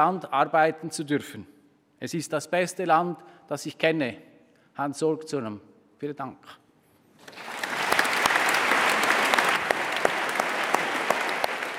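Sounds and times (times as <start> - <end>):
speech: 0.0 - 6.6
parliamentary assembly applause: 7.3 - 11.7.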